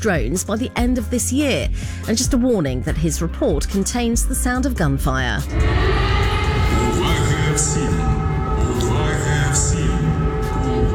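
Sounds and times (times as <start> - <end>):
speech: 0.0 - 6.1, 6.7 - 8.3
low rumbling background: 5.4 - 10.9
air raid warning siren echoing: 5.5 - 10.9.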